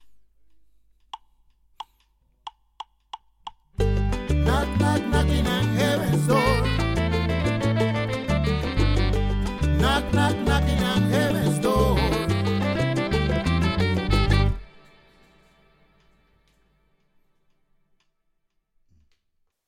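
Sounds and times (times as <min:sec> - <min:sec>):
latin music: 0:03.8 - 0:15.9.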